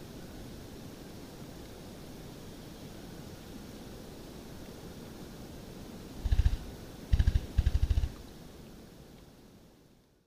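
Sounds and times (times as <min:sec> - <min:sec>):
faint steady background noise: 0:00.0 - 0:10.2
copper pheasant drumming: 0:06.2 - 0:08.2.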